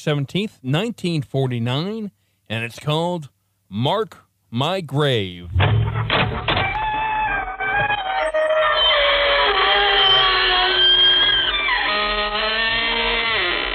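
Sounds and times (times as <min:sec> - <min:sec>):
speech: 0:00.0 - 0:05.8
creaking door: 0:05.5 - 0:13.7.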